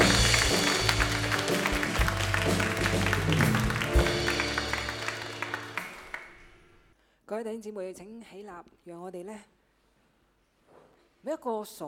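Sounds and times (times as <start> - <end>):
audience applause: 0.0 - 6.8
speech: 7.4 - 9.6, 11.2 - 11.8.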